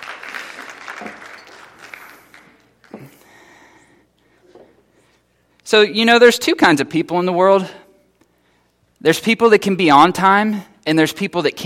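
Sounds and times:
audience applause: 0.0 - 3.0
speech: 1.0 - 1.2, 5.7 - 7.8, 9.0 - 11.6.

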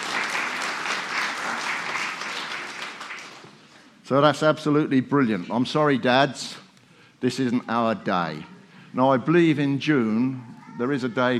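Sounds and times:
crowd clapping: 0.0 - 3.9
speech: 4.1 - 6.6, 7.2 - 11.3.

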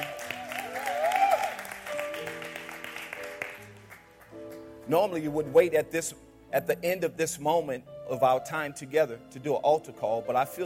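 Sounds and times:
audience hand clapping: 0.0 - 4.8
speech: 4.9 - 10.6.

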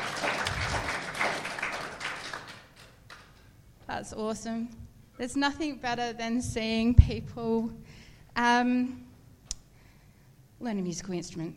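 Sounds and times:
audience applause: 0.0 - 3.4
speech: 4.0 - 9.1, 10.6 - 11.5.

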